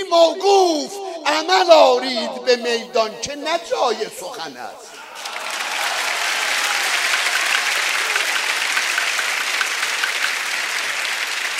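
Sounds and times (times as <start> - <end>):
speech: 0.1 - 5.0
audience applause: 5.0 - 11.5.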